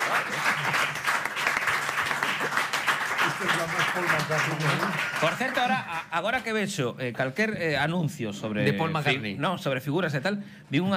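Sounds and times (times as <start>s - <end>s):
audience applause: 0.0s - 6.0s
speech: 3.4s - 10.9s.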